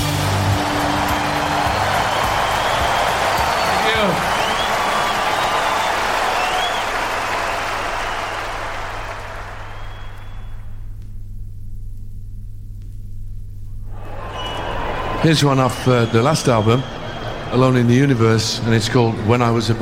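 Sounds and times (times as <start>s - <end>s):
large live concert audience cheering and clapping: 0.0s - 10.7s, 13.8s - 19.8s
shrill whistles: 0.2s - 10.8s, 13.9s - 17.6s
speech: 15.2s - 19.8s.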